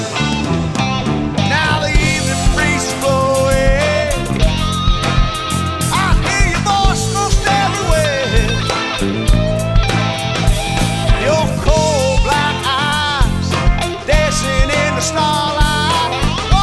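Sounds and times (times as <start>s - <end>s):
southern rock band playing: 0.0s - 16.6s.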